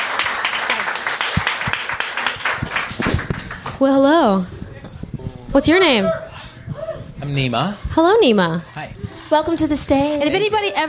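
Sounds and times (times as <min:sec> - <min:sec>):
crowd clapping: 0:00.0 - 0:03.8
speech: 0:03.8 - 0:04.6, 0:05.5 - 0:06.2, 0:07.3 - 0:10.8.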